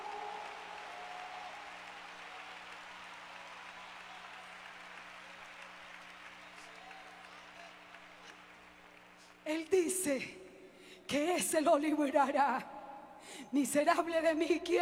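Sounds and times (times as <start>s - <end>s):
crowd applauding: 0.0s - 10.8s
speech: 9.5s - 10.4s, 11.1s - 12.7s, 13.3s - 14.8s.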